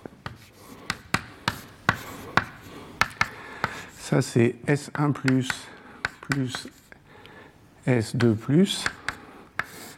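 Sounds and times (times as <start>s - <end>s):
writing by hand during a physics lecture: 0.0s - 4.0s, 4.9s - 7.0s, 8.1s - 9.9s
speech: 4.1s - 5.7s, 6.3s - 6.8s, 7.9s - 9.0s.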